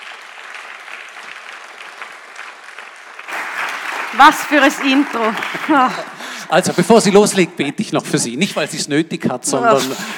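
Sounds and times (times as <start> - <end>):
audience applause: 0.0 - 7.4
speech: 4.1 - 10.1.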